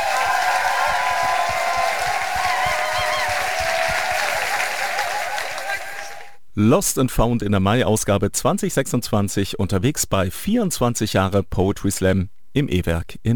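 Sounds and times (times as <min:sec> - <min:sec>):
audience applause: 0:00.0 - 0:06.4
speech: 0:06.6 - 0:13.3.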